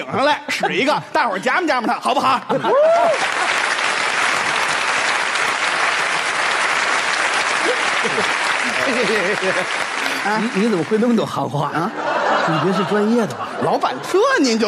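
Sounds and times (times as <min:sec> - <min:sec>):
speech: 0:00.0 - 0:03.5, 0:07.7 - 0:14.6
laughter: 0:01.7 - 0:03.6, 0:07.5 - 0:14.6
audience applause: 0:02.6 - 0:11.6.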